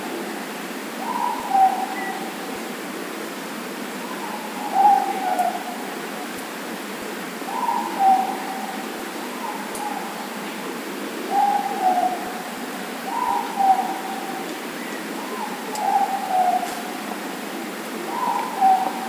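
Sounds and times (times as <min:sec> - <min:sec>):
morepork hooting: 0:01.0 - 0:02.3, 0:04.2 - 0:05.8, 0:07.5 - 0:10.2, 0:11.3 - 0:12.4, 0:13.1 - 0:14.4, 0:15.2 - 0:17.0, 0:18.0 - 0:19.0.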